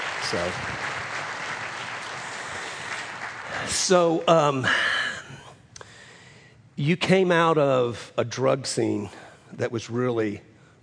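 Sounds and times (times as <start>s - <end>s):
crowd clapping: 0.0s - 4.6s
speech: 0.3s - 1.0s, 3.6s - 4.9s, 6.8s - 10.8s.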